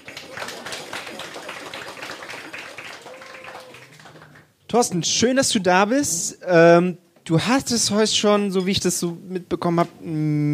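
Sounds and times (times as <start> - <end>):
audience clapping: 0.0 - 4.6
speech: 4.7 - 10.5.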